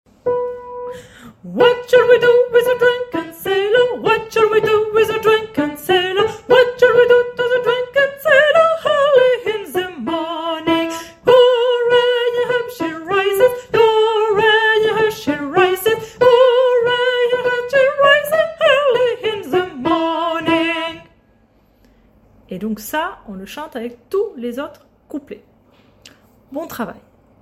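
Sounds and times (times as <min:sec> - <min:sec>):
tenor singing: 0:01.4 - 0:21.1.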